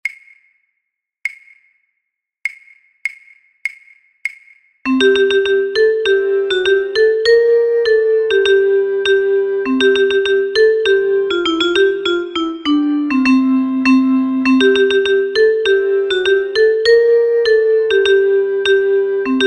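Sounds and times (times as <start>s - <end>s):
flute: 4.9s - 19.4s.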